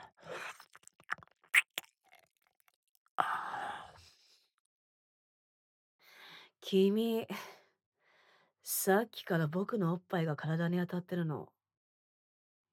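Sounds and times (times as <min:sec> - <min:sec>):
gentle nibbling bites on an ear: 0:00.4 - 0:02.3
speech: 0:06.7 - 0:07.5, 0:08.7 - 0:11.6.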